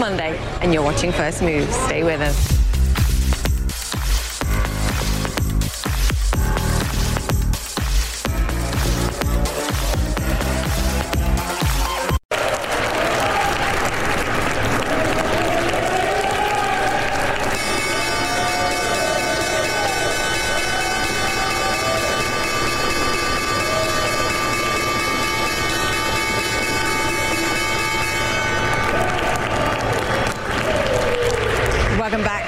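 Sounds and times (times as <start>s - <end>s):
speech: 0.0s - 2.6s
applause and crowd noise: 2.9s - 32.4s
stock exchange opening bell ringing: 17.6s - 29.3s.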